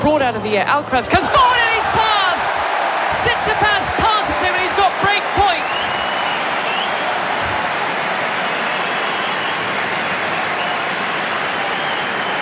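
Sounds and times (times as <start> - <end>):
speech: 0.1 - 2.0, 3.2 - 5.6
tennis crowd roaring and applauding: 1.1 - 12.4.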